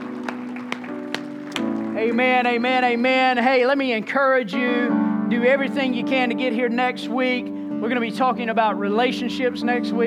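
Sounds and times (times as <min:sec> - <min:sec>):
audience clapping in unison: 0:00.0 - 0:04.4
speech: 0:02.0 - 0:10.0.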